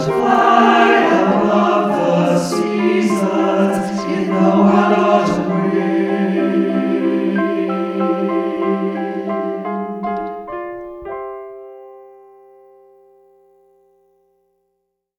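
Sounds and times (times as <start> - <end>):
SATB four-part choir singing: 0.0 - 10.5.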